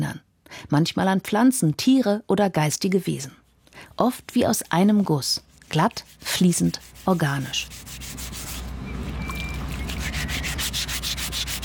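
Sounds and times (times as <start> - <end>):
speech: 0.7 - 8.0
filing a stone sculpture: 5.5 - 8.6, 9.8 - 11.6.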